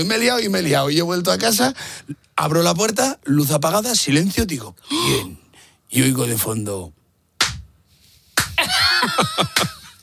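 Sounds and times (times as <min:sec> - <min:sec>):
speech: 0:00.0 - 0:07.0, 0:09.0 - 0:09.8
hand claps: 0:07.4 - 0:07.7, 0:08.4 - 0:10.0.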